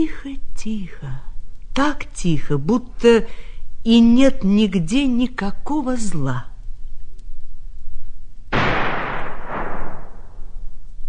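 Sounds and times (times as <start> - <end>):
speech: 0.0 - 6.5
gunshot in a forest: 8.5 - 10.5.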